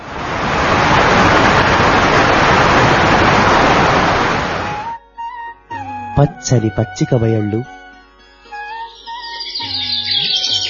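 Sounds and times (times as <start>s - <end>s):
roaring waterfall: 0.0s - 4.9s
rushing streams: 0.0s - 4.9s
speech: 6.2s - 7.8s.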